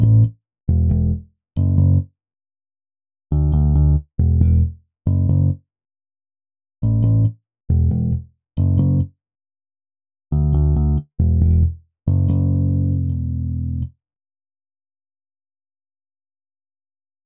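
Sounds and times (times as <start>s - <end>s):
bass: 0.0s - 2.1s, 3.3s - 5.6s, 6.8s - 9.2s, 10.3s - 14.0s.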